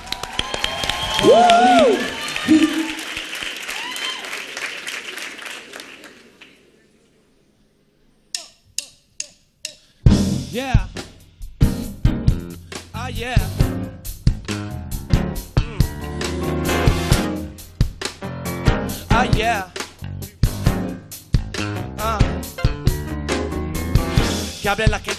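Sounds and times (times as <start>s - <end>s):
crowd whooping and cheering: 0.0s - 6.1s
scattered claps: 0.0s - 6.7s
crowd applauding: 0.0s - 6.9s
speech: 1.2s - 2.8s, 24.7s - 25.1s
music: 8.8s - 25.1s.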